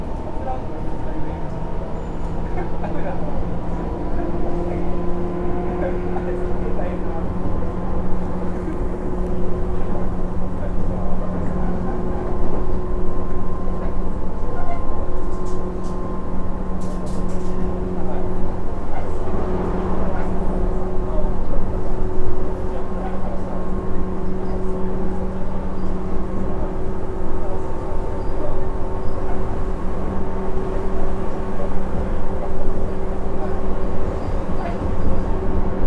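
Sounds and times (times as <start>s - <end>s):
train interior: 0.0s - 35.8s.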